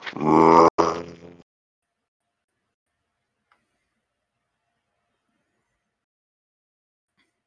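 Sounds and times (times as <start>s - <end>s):
deep bellowing creature call echoing: 0.0s - 1.2s.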